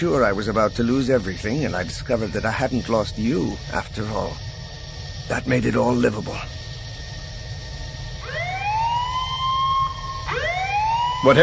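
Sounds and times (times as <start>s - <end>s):
speech: 0.0s - 4.5s, 5.3s - 6.6s, 11.2s - 11.4s
low constant rumble: 0.0s - 11.4s
loud blaring ship alarm: 8.2s - 11.4s.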